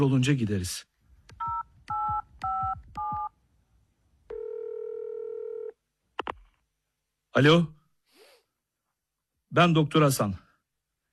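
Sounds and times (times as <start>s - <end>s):
speech: 0.0s - 0.9s, 7.4s - 7.8s, 9.5s - 10.4s
telephone dialing tones: 1.4s - 3.3s, 4.3s - 5.8s.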